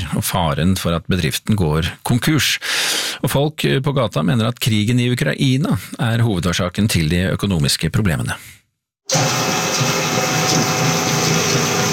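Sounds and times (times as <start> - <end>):
speech: 0.1 - 9.6
medium-sized kitchen machine whirring: 9.1 - 11.9.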